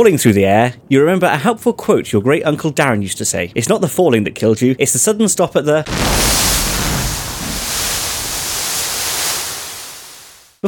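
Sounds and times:
speech: 0.0s - 7.0s
rushing water roaring as a 4x4 hits the water at the bottom of a cliff: 5.9s - 10.5s.

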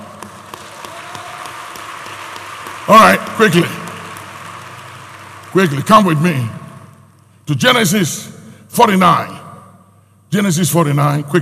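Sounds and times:
audience clapping: 0.0s - 7.1s
speech: 2.9s - 3.8s, 5.5s - 6.6s, 7.5s - 9.4s, 10.3s - 11.3s.

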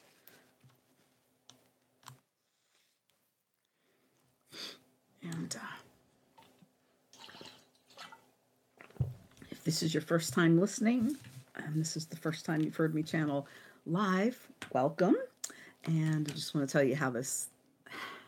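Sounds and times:
speech: 5.5s - 5.9s, 9.7s - 15.3s, 15.9s - 17.5s
person drinking a swig of water: 7.2s - 8.2s.

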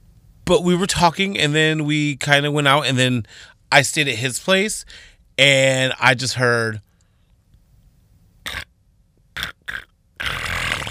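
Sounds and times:
speech: 0.5s - 6.9s, 8.4s - 8.7s
person imitating a loud snore with their voice: 9.4s - 10.9s.

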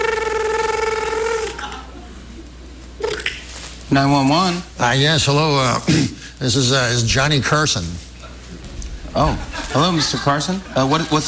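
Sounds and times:
brief vocal burst: 0.0s - 1.6s
voice imitating a telephone ringing: 0.0s - 1.6s
laughter: 1.1s - 2.5s, 8.2s - 11.2s
speech: 3.9s - 8.1s, 9.2s - 11.2s.

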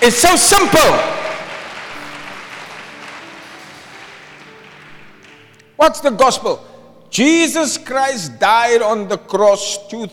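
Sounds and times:
speech: 0.0s - 1.2s, 5.8s - 10.1s
audience clapping: 0.3s - 5.8s.

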